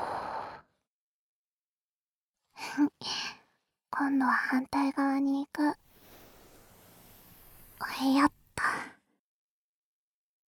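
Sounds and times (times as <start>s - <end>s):
speech: 2.8s - 3.4s, 4.0s - 5.8s, 7.8s - 8.9s
soft breath blown into the ear in a whispered roleplay: 5.8s - 8.8s.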